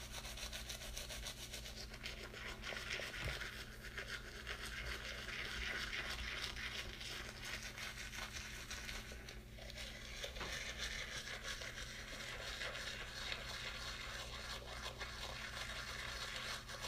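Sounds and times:
person brushing teeth: 0.0s - 16.8s.

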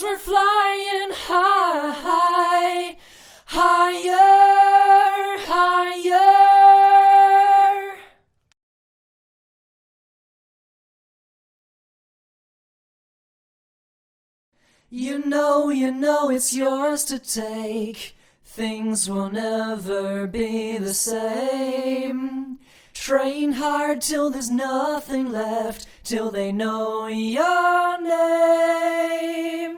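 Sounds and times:
a cappella singing: 0.0s - 8.2s, 14.9s - 29.7s.

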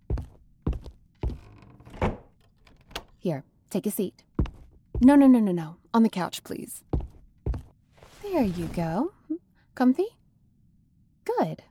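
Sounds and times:
door closing: 1.2s - 3.2s
speech: 3.2s - 4.3s, 5.0s - 6.9s, 8.3s - 9.2s, 9.8s - 10.2s, 11.3s - 11.6s.

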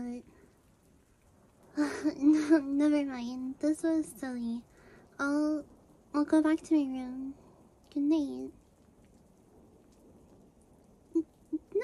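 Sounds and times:
low thunder rumbling in a thunderstorm: 0.0s - 11.8s
thunderstorm rain hissing: 0.0s - 11.8s
speech: 1.8s - 8.6s.

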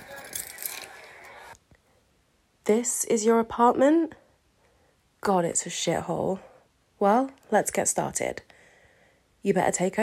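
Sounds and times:
car keys jangling as they are handed over: 0.0s - 1.0s
speech: 2.7s - 4.2s, 5.2s - 8.5s, 9.4s - 10.0s.

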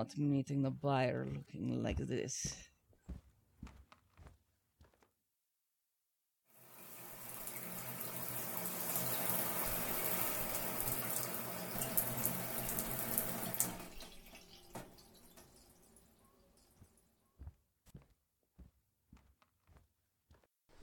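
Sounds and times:
speech: 0.0s - 2.7s
hot shower running: 6.6s - 17.1s
scattered drips: 6.6s - 17.1s.

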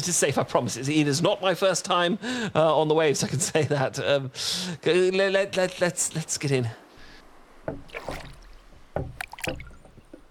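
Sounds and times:
speech: 0.0s - 6.8s, 7.7s - 8.3s, 9.0s - 9.6s
oars rowing a boat through water: 7.0s - 10.2s.

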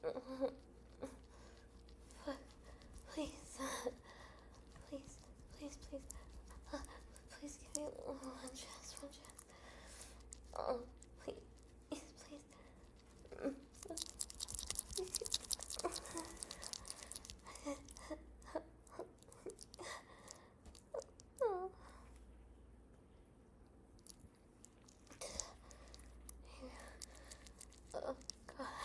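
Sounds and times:
noisy wet noises of a really wet dog: 0.4s - 21.6s, 23.9s - 28.8s.

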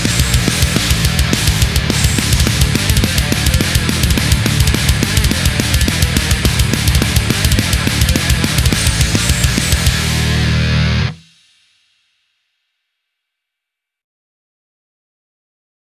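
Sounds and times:
drums: 0.0s - 12.0s.

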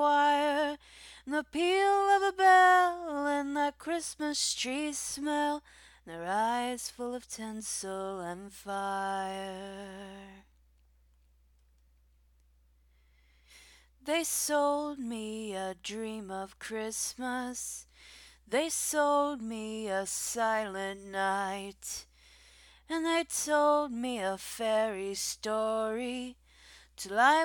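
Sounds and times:
a cappella singing: 0.0s - 10.5s, 14.0s - 17.8s, 18.5s - 22.1s, 22.9s - 26.4s, 27.0s - 27.4s.

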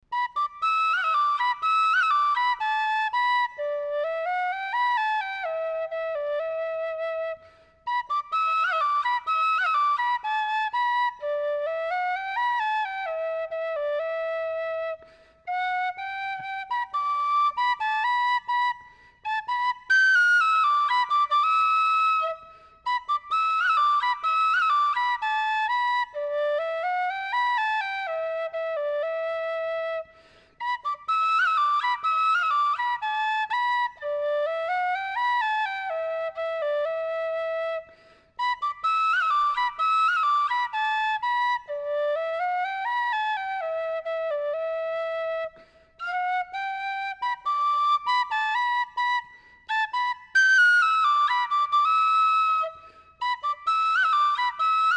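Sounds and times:
tin whistle melody: 0.0s - 54.9s.

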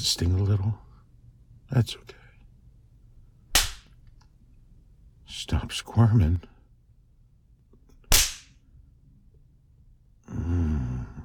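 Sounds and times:
speech: 0.0s - 0.9s, 1.7s - 2.2s, 5.3s - 6.5s
hand spanking slap on buttocks: 3.5s - 3.9s, 8.0s - 8.6s
low breathy voiced sigh or whimper: 10.2s - 11.2s.

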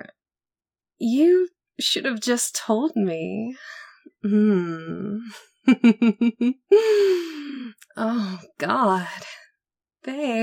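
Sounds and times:
speech: 1.0s - 9.4s, 10.0s - 10.4s
heavy agitated breathing: 6.7s - 7.8s.

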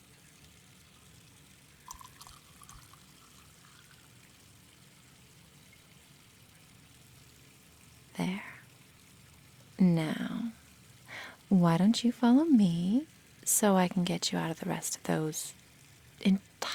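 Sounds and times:
drink being poured: 1.7s - 4.5s
speech: 8.2s - 8.5s, 9.8s - 10.4s, 11.5s - 15.6s, 16.2s - 16.7s.

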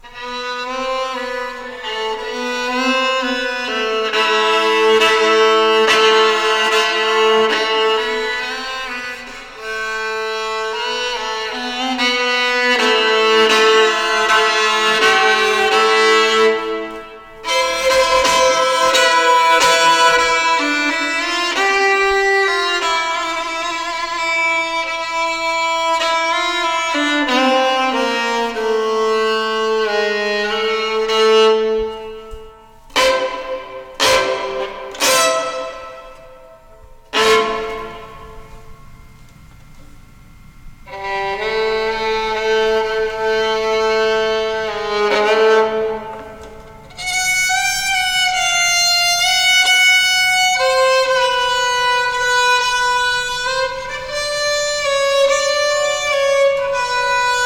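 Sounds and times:
violin playing: 0.0s - 57.4s.

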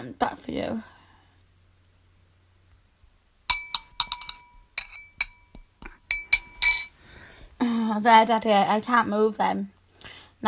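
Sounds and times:
speech: 0.0s - 1.0s, 7.9s - 9.8s
metal chains clinking as wrists are chained: 3.5s - 5.5s, 6.1s - 7.0s.

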